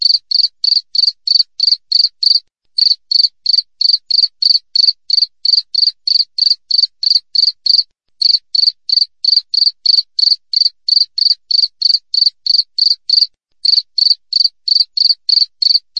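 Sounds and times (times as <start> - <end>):
wild cricket chirping: 0.0 - 15.9.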